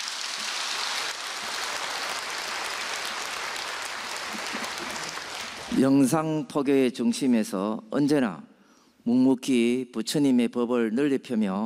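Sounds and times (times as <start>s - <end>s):
audience applause: 0.0s - 5.9s
speech: 5.8s - 11.6s.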